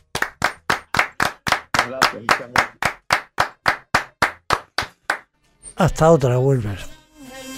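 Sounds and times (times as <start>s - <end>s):
applause: 0.0s - 5.3s
speech: 1.8s - 2.8s, 5.8s - 6.9s.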